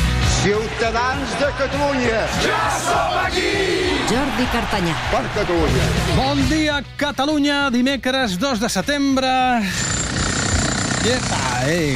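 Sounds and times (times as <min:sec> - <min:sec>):
speech: 0:00.4 - 0:10.0, 0:11.0 - 0:11.9
construction jackhammer pounding in a radio studio: 0:09.6 - 0:11.9
wavering mechanical whine: 0:09.7 - 0:11.9.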